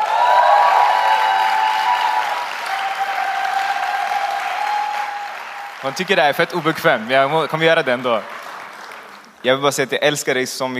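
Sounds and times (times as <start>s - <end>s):
audience applause: 0.0s - 9.9s
speech: 5.8s - 8.3s, 9.4s - 10.7s.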